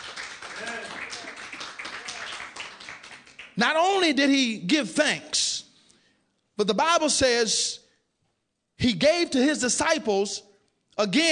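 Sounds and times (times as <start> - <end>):
crowd clapping: 0.0 - 3.6
scattered voices calling out and cheering: 0.4 - 2.5
speech: 3.6 - 5.4, 6.6 - 7.8, 8.8 - 11.3.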